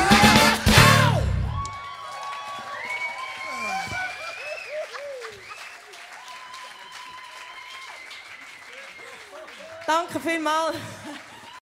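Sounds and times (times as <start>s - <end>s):
mixed vocals: 0.0s - 1.4s.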